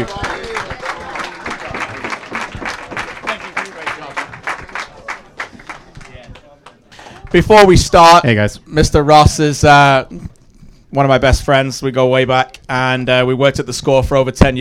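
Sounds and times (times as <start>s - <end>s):
audience applause: 0.0s - 7.4s
speech: 7.3s - 10.3s, 10.9s - 14.5s.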